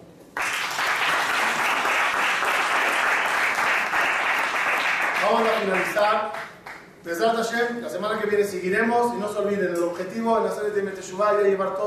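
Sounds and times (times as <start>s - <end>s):
audience applause: 0.4s - 6.8s
speech: 5.6s - 11.8s.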